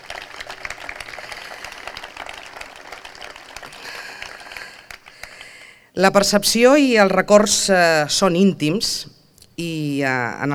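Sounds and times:
audience applause: 0:00.0 - 0:05.7
speech: 0:06.0 - 0:10.5.

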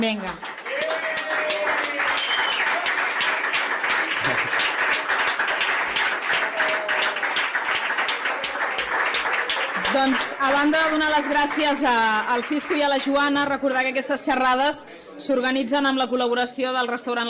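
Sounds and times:
speech: 0:00.0 - 0:00.6, 0:10.0 - 0:17.2
audience ovation applause: 0:00.0 - 0:13.1.

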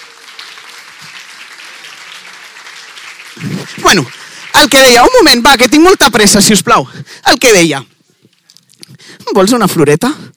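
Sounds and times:
audience applause: 0:00.0 - 0:05.8
speech: 0:03.4 - 0:07.9, 0:09.3 - 0:10.3.

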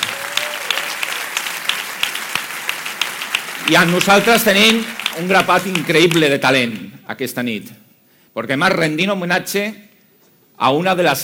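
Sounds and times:
audience applause: 0:00.0 - 0:06.7
speech: 0:03.7 - 0:07.8, 0:08.4 - 0:09.9, 0:10.6 - 0:11.2.

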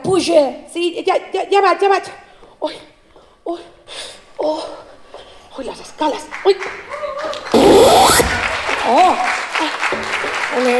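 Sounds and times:
speech: 0:00.1 - 0:04.9, 0:05.6 - 0:10.7
applause from the TV: 0:05.9 - 0:10.7.

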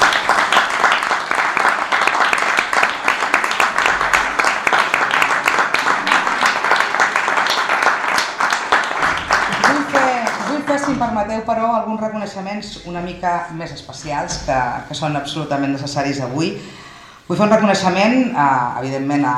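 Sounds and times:
audience applause: 0:00.0 - 0:10.9
speech: 0:11.2 - 0:19.3.

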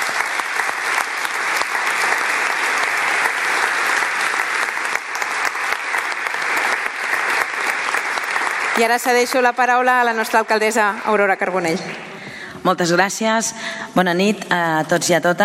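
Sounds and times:
audience applause: 0:00.0 - 0:10.4
speech: 0:08.8 - 0:15.4.

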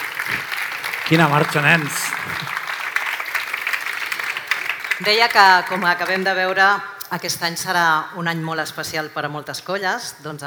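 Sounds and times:
crowd applauding: 0:00.0 - 0:06.6
speech: 0:01.1 - 0:02.4, 0:05.0 - 0:10.4.

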